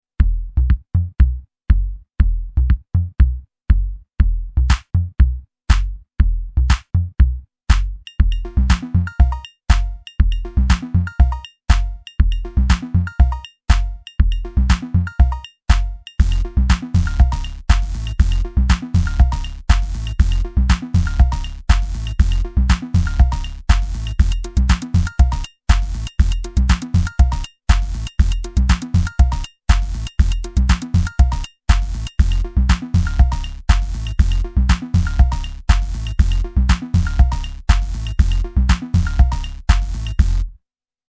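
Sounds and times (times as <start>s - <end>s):
Korg Volca Sample groovebox: 0.2s - 40.5s.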